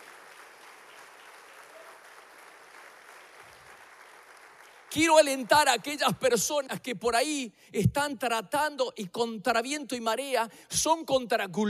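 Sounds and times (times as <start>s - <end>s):
audience applause: 0.0s - 6.0s
speech: 4.9s - 11.6s.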